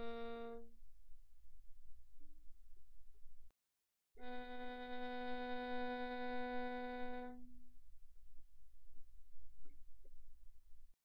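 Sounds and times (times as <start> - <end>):
violin bowed pianissimo on the G string: 0.0 - 0.7, 4.2 - 7.6.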